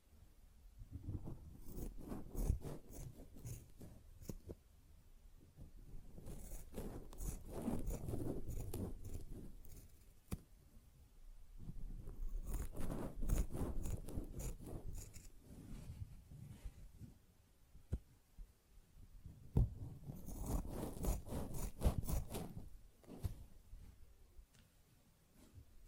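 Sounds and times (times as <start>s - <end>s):
sponge scratched and rubbed: 1.1s - 4.5s, 6.1s - 10.1s, 11.7s - 16.9s, 20.0s - 23.5s.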